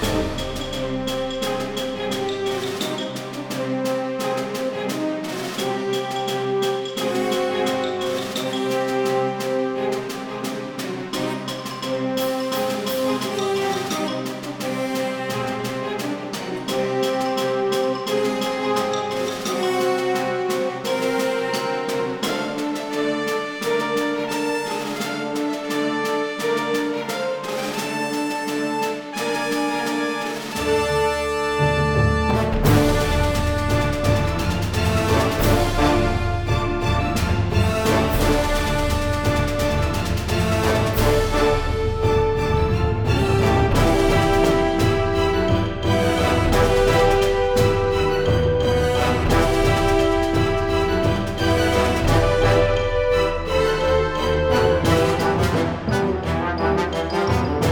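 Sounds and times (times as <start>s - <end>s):
music: 0.0s - 57.7s.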